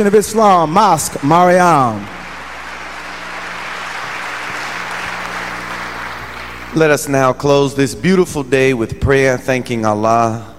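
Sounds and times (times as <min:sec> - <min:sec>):
speech: 0:00.0 - 0:02.2, 0:06.8 - 0:10.5
audience applause at a Nation of Islam mosque gathering: 0:00.0 - 0:06.9
low hum: 0:00.6 - 0:07.4.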